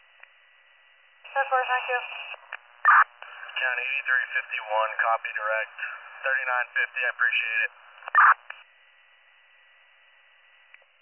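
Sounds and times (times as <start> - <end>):
dispatch radio cancellation tones: 1.3 - 8.4
speech: 1.4 - 3.0, 3.6 - 8.5.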